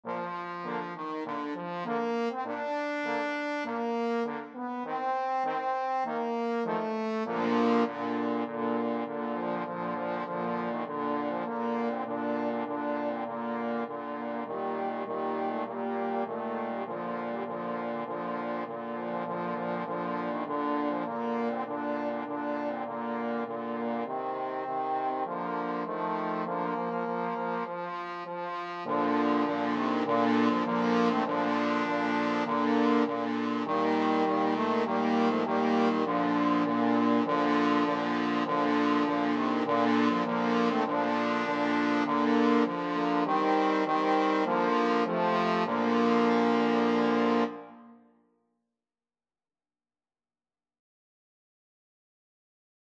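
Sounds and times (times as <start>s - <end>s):
trombone quartet: 0.1s - 47.6s.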